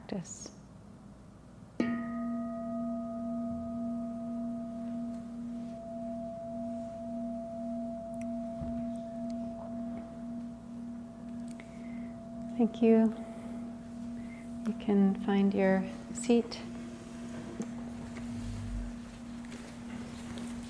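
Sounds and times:
speech: 0.1 - 0.6, 12.6 - 13.3, 14.7 - 16.7
meditation bell ringing: 1.8 - 20.6.

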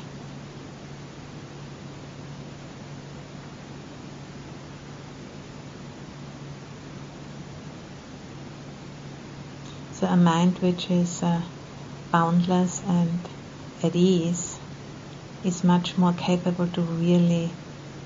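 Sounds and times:
air conditioning hum: 0.0 - 18.0
speech: 10.0 - 14.5, 15.4 - 17.6.

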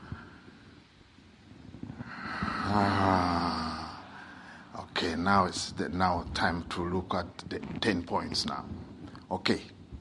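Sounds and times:
deep breath out during a guided meditation exercise: 1.9 - 4.7
speech: 5.3 - 9.8.

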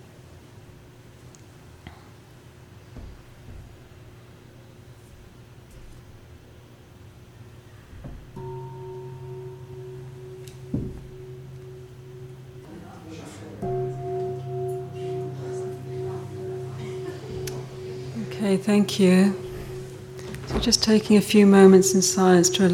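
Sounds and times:
meditation bell ringing: 8.4 - 22.7
speech: 18.5 - 19.4, 20.6 - 22.7.

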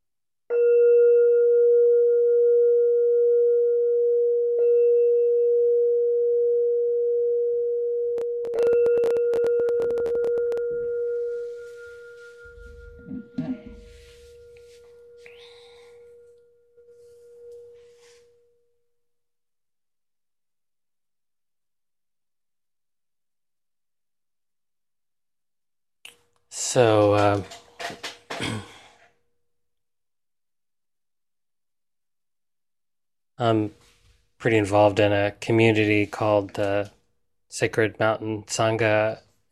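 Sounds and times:
meditation bell ringing: 0.5 - 8.0, 8.6 - 18.3
speech: 26.8 - 27.6, 33.4 - 33.8, 34.4 - 39.2.

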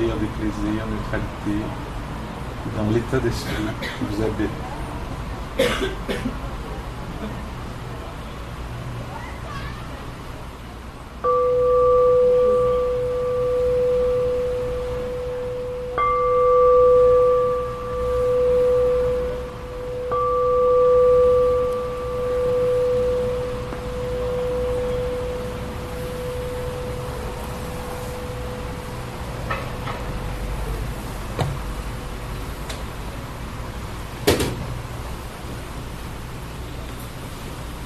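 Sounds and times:
speech: 0.2 - 2.0, 2.6 - 4.8, 5.6 - 6.6
person coughing: 3.4 - 4.2, 5.6 - 6.4
meditation bell ringing: 11.2 - 30.7.

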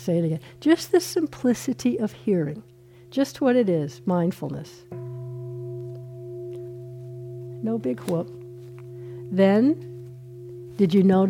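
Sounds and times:
speech: 0.0 - 5.0, 7.6 - 8.4, 9.3 - 9.9, 10.8 - 11.2
meditation bell ringing: 4.0 - 11.2.

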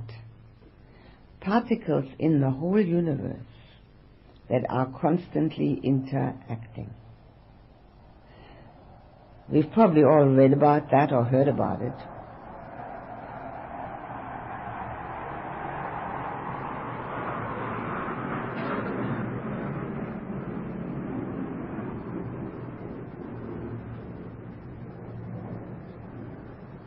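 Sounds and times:
speech: 1.4 - 3.6, 4.5 - 7.0, 9.5 - 12.1
aeroplane passing overhead: 7.0 - 26.8.

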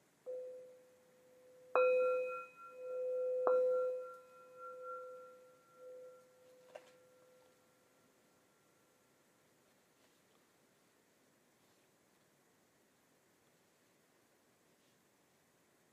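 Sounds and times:
bell being rung: 1.8 - 7.5.

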